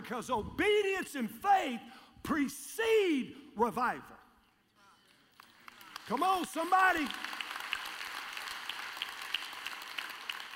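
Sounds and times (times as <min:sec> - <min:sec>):
speech: 0:00.1 - 0:04.2, 0:06.1 - 0:07.3
soft scattered crowd applause: 0:05.0 - 0:10.5.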